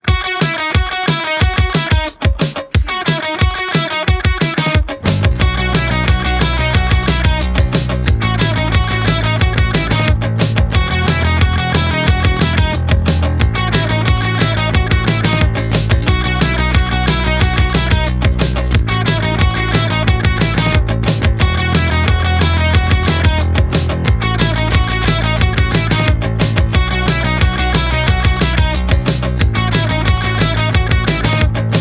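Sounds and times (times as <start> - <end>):
high school rock music: 0.0 - 31.8.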